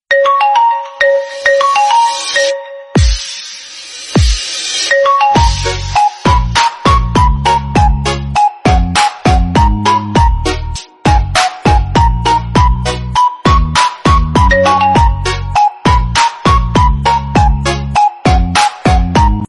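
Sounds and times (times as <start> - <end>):
ringtone: 0.1 - 19.4.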